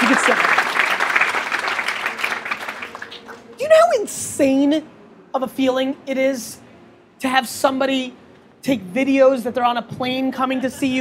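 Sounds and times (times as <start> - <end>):
audience applause: 0.0 - 3.6
speech: 4.4 - 6.6, 7.2 - 10.9.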